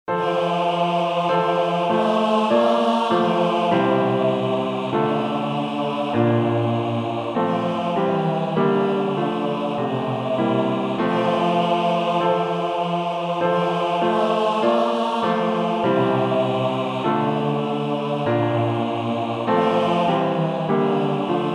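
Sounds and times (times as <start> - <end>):
senior choir basses singing: 0.2 - 21.5.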